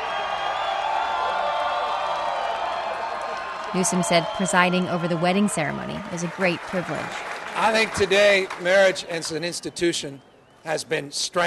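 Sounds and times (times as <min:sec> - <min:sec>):
adoring crowd cheering and whooping: 0:00.0 - 0:09.7
scattered clapping: 0:02.3 - 0:09.6
speech: 0:03.7 - 0:11.4.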